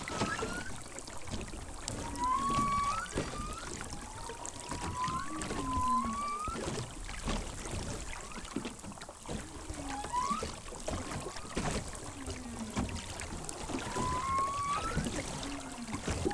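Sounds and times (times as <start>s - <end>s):
boat noise: 0.0s - 16.3s
water noise: 0.0s - 16.3s
humpback whale vocalizations: 1.9s - 6.6s, 12.0s - 16.3s.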